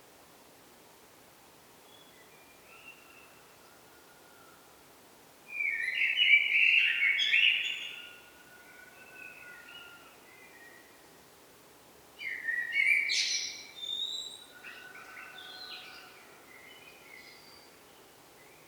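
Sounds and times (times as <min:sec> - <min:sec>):
faint background hiss: 0:00.0 - 0:18.6
common blackbird singing: 0:05.6 - 0:08.2, 0:12.2 - 0:17.7.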